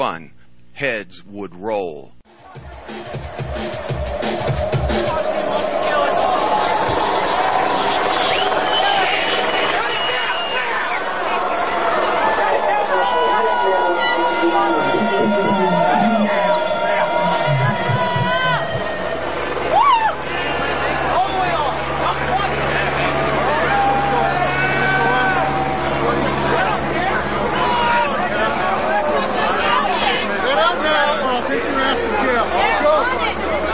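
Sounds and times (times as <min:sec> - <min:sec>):
speech: 0:00.0 - 0:07.0
crowd chatter at a rave: 0:02.3 - 0:33.7.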